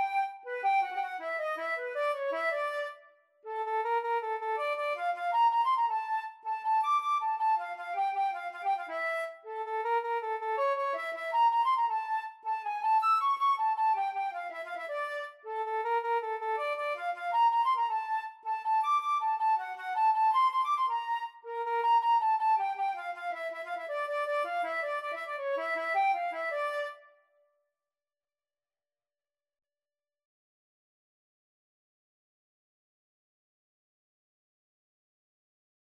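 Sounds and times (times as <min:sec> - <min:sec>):
violin in karaoke music: 0:00.0 - 0:02.8, 0:03.5 - 0:27.0
flute in karaoke music: 0:00.0 - 0:27.2.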